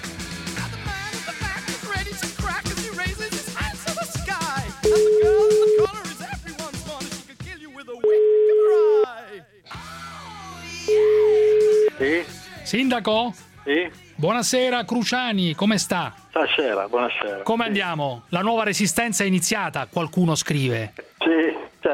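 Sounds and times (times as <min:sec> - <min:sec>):
busy music: 0:00.0 - 0:09.0, 0:09.6 - 0:21.9
telephone line ringing: 0:04.8 - 0:05.9, 0:08.0 - 0:09.1, 0:10.9 - 0:12.0
speech: 0:12.7 - 0:21.9.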